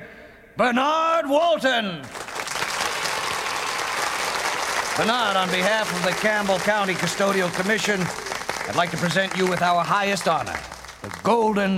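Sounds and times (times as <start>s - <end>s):
speech: 0.6s - 2.2s, 5.0s - 11.7s
audience applause at an award ceremony welcoming the custodian of the year: 2.0s - 11.6s.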